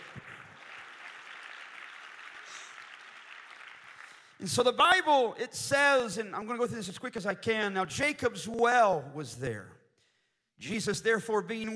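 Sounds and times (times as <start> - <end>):
audience clapping hands: 0.0 - 4.4
speech: 4.4 - 9.8, 10.6 - 11.7.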